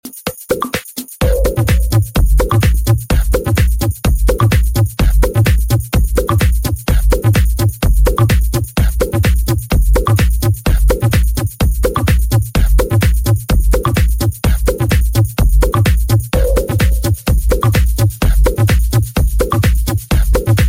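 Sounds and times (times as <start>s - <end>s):
cool minimal music: 0.0s - 20.6s.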